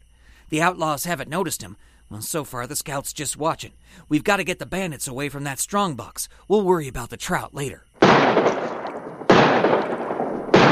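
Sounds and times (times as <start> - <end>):
speech: 0.5 - 8.7
gunshots fired at a lock: 8.0 - 10.7.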